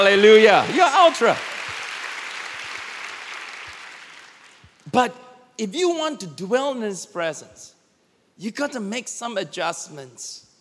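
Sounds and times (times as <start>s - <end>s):
speech: 0.0s - 1.5s, 4.9s - 7.8s, 8.4s - 10.4s
audience clapping: 0.0s - 4.9s.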